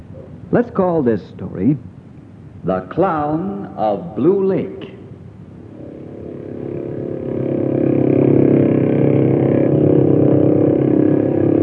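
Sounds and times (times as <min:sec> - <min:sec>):
speech: 0:00.5 - 0:01.9, 0:02.6 - 0:04.9
motorboat engine droning: 0:04.2 - 0:11.6.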